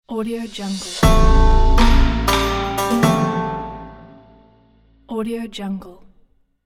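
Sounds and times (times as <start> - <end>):
logo jingle: 0.6 - 4.8.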